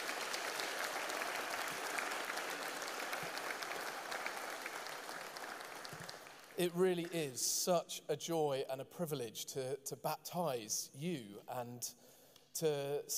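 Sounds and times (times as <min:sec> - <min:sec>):
cheering and applause: 0:00.0 - 0:07.1
speech: 0:06.6 - 0:13.1.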